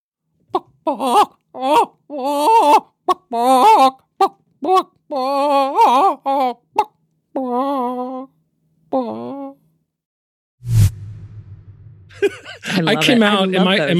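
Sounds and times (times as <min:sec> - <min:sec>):
person imitating a chicken with clucks and squawks: 0:00.5 - 0:09.6
speech: 0:00.8 - 0:04.0, 0:04.6 - 0:06.6, 0:12.9 - 0:13.9
laughter: 0:12.1 - 0:13.9.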